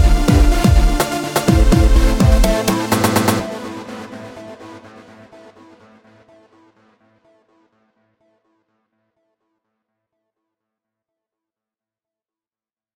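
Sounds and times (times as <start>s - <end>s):
funky music sample: 0.0s - 3.5s.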